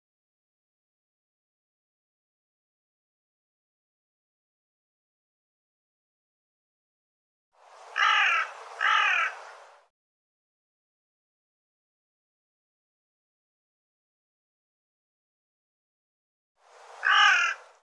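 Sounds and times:
bird uttering raspy harsh calls: 8.0s - 9.6s, 17.0s - 17.8s.

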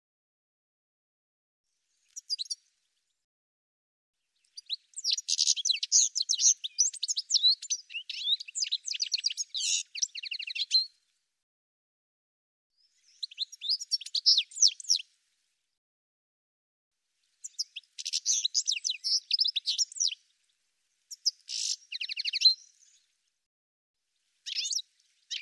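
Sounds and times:
bird calls of high rapid chirps and twittering notes: 2.0s - 2.6s, 4.4s - 10.9s, 12.8s - 15.0s, 17.4s - 20.3s, 21.1s - 23.1s, 24.4s - 25.4s.

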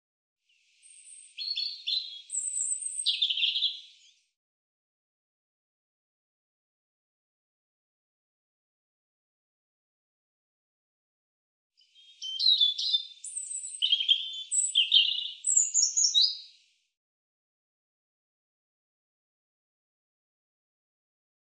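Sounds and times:
European robin song: 0.5s - 4.4s, 11.8s - 16.9s.

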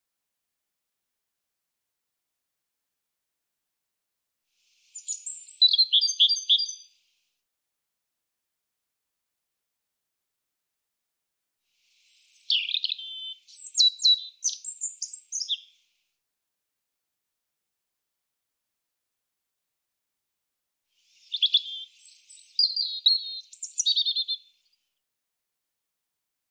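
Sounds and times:
European robin singing: 4.9s - 6.9s, 12.0s - 15.7s, 21.2s - 24.5s.

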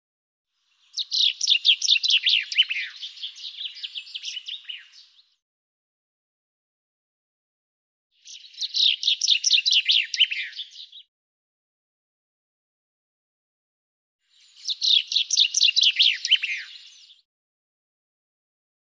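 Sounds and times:
bird chirping song: 0.6s - 5.4s, 8.2s - 11.1s, 14.2s - 17.3s.

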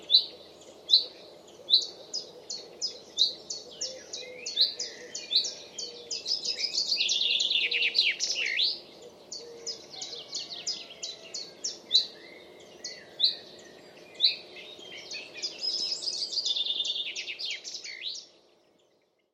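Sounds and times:
common chaffinch sharp high chirped calls: 0.0s - 18.5s.

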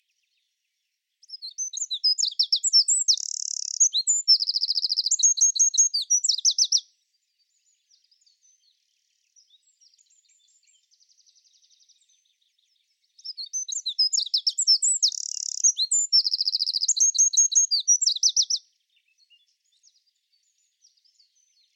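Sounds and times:
bird calling with chirps: 1.3s - 6.8s, 13.2s - 18.6s.

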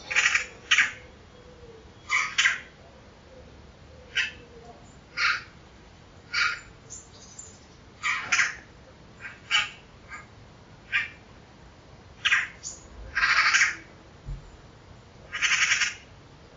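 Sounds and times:
harsh raspy pulsed bird calls: 0.0s - 2.8s, 4.0s - 4.5s, 5.1s - 5.6s, 6.3s - 7.4s, 8.0s - 10.3s, 10.9s - 11.2s, 12.2s - 13.9s, 15.3s - 16.1s.

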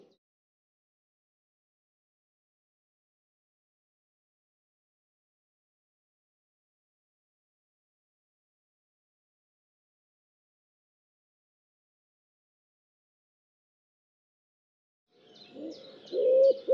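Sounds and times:
bird giving low mellow hooting notes: 15.5s - 16.7s.

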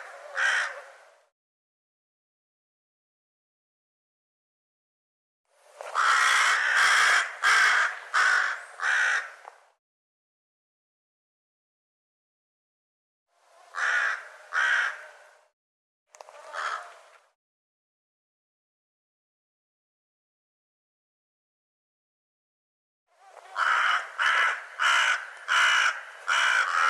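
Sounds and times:
bird cawing: 0.0s - 1.0s, 5.9s - 9.4s, 13.7s - 15.4s, 16.4s - 17.1s, 23.2s - 26.8s.

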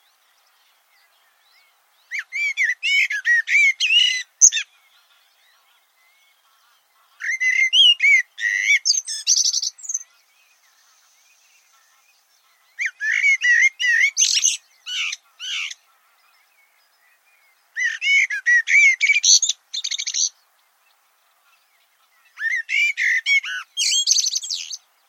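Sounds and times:
bird singing: 0.0s - 25.0s.

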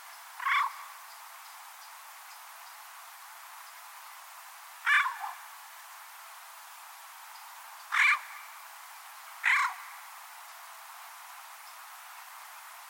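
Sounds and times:
bird cawing: 0.4s - 0.9s, 4.8s - 5.4s, 7.9s - 8.5s, 9.4s - 10.0s.

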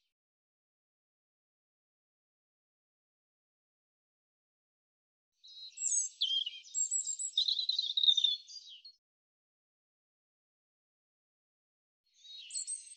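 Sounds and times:
European robin singing: 5.4s - 9.0s, 12.2s - 12.9s.

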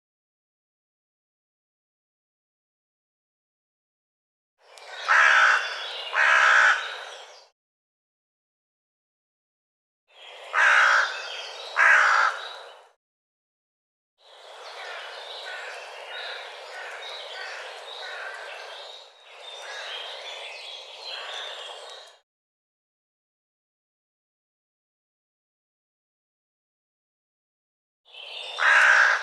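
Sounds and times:
bird harsh rasping calls: 4.9s - 7.3s, 10.5s - 12.8s, 14.5s - 20.3s, 28.2s - 29.2s.

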